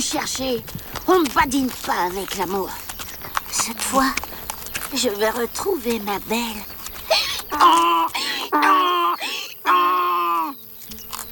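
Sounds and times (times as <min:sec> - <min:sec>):
speech: 0:00.0 - 0:02.9, 0:03.5 - 0:04.3, 0:04.9 - 0:06.7, 0:07.5 - 0:09.9
violins imitating a donkey's hee-haw bray: 0:07.1 - 0:10.6.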